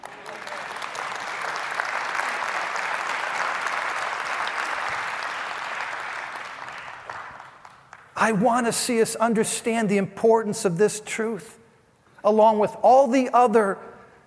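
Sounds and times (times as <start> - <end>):
audience applause: 0.0 - 8.1
speech: 8.2 - 11.6, 12.2 - 13.9.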